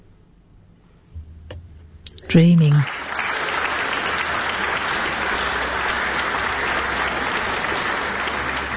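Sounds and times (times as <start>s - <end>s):
speech: 2.3s - 3.1s
audience applause for a New Zealand pianist: 2.6s - 8.7s.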